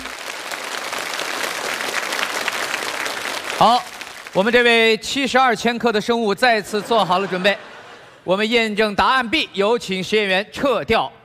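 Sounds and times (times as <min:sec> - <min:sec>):
audience applause: 0:00.0 - 0:04.6
speech: 0:03.6 - 0:11.2
laughter: 0:06.4 - 0:08.4.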